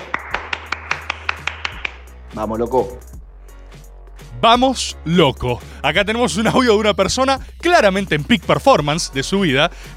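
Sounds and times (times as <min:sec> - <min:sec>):
people clapping: 0:00.0 - 0:02.1
speech: 0:02.3 - 0:03.2, 0:04.4 - 0:09.9.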